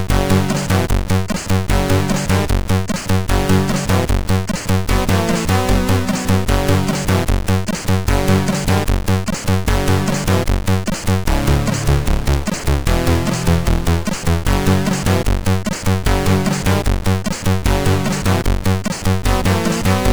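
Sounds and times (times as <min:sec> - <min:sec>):
MOS6581R4 SID chip music: 0:00.1 - 0:16.9, 0:17.7 - 0:20.1.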